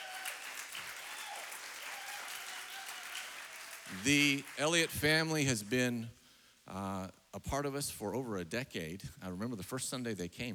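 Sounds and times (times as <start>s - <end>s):
audience clapping: 0.0s - 5.9s
speech: 3.9s - 10.5s.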